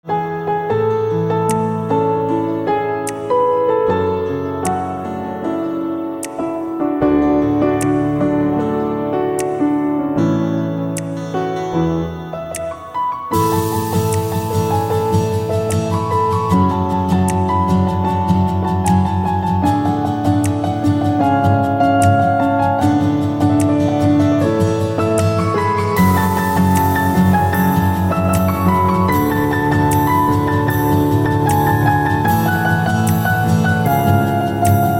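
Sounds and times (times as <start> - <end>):
piano: 0.0 - 34.9.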